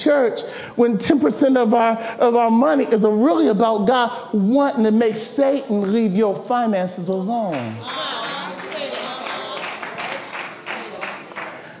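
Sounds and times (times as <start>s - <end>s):
speech: 0.0s - 8.2s
scattered hand claps: 7.5s - 11.7s.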